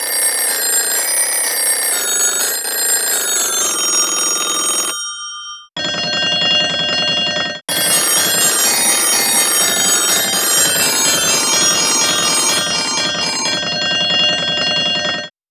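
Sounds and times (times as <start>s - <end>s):
telephone: 0.0s - 15.3s.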